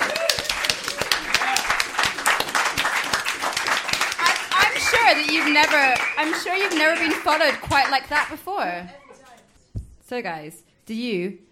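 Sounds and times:
people clapping for the band: 0:00.0 - 0:08.6
speech: 0:05.3 - 0:09.0, 0:10.1 - 0:11.5.

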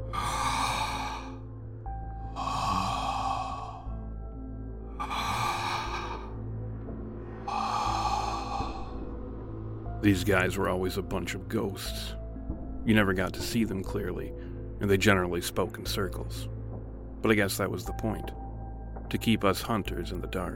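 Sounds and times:
hoarse, menacing breathing: 0:00.0 - 0:06.6, 0:07.2 - 0:09.3
speech: 0:10.0 - 0:12.2, 0:12.8 - 0:16.6, 0:17.2 - 0:18.4, 0:19.1 - 0:20.5.

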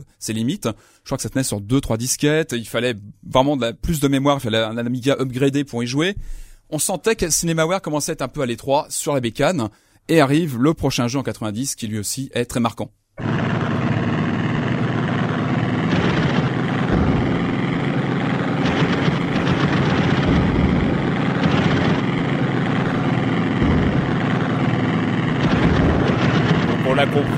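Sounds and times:
speech: 0:00.0 - 0:13.7
propeller-engine drone in arcade flight simulator game: 0:13.2 - 0:27.3
short crackling bursts: 0:13.2 - 0:27.3.

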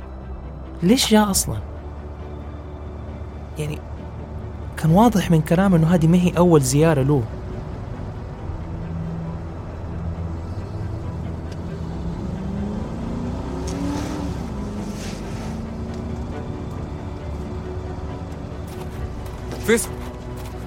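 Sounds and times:
group's cars arriving: 0:00.0 - 0:20.6
speech: 0:00.8 - 0:01.7, 0:03.6 - 0:03.9, 0:04.8 - 0:07.4, 0:19.7 - 0:20.0.

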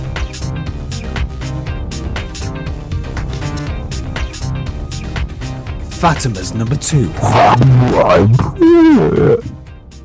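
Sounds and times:
speech: 0:06.0 - 0:09.6
burp into the microphone: 0:07.2 - 0:09.6.

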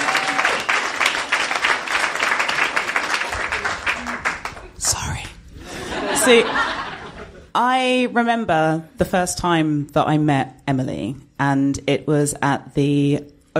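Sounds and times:
audience applause: 0:00.0 - 0:04.8
laughter: 0:05.7 - 0:07.5
speech: 0:06.3 - 0:06.6, 0:07.6 - 0:13.5.

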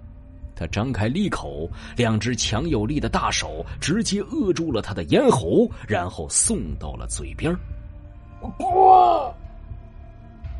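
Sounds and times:
speech: 0:00.6 - 0:07.8, 0:08.4 - 0:09.4
man screaming in agony: 0:08.4 - 0:09.4.

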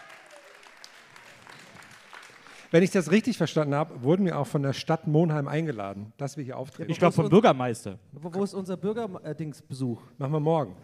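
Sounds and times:
audience applause: 0:00.0 - 0:03.3
speech: 0:02.7 - 0:10.8.

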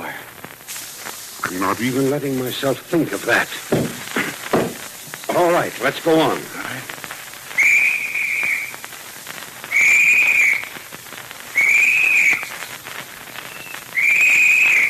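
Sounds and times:
speech: 0:01.4 - 0:03.9, 0:05.4 - 0:06.9
shrill whistle blasts as a search party's signal: 0:07.5 - 0:08.8, 0:09.7 - 0:10.8, 0:11.5 - 0:12.7, 0:13.4 - 0:14.8.

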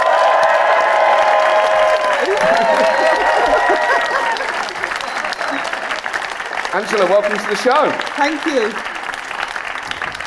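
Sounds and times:
studio audience whoops and shouts: 0:00.0 - 0:05.1
studio audience clapping as Angela Rayner is introduced: 0:00.0 - 0:10.2
laughter: 0:02.1 - 0:07.7
speech: 0:06.8 - 0:08.9.

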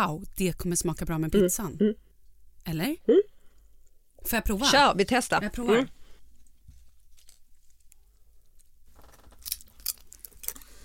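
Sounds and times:
speech: 0:00.0 - 0:02.0, 0:02.6 - 0:03.2, 0:04.2 - 0:06.0
truffle potato chips crunching: 0:09.4 - 0:10.8.

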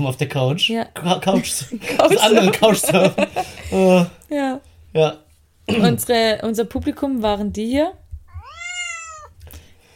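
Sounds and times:
speech: 0:00.0 - 0:08.0
laughter: 0:01.4 - 0:04.1
cat meowing: 0:08.3 - 0:09.4.

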